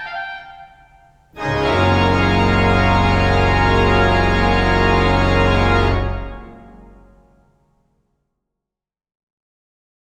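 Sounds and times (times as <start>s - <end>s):
organ postlude: 0.0s - 7.4s.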